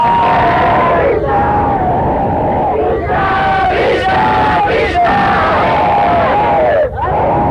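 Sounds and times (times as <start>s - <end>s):
crowd chanting loudly in unison: 0.2s - 7.4s.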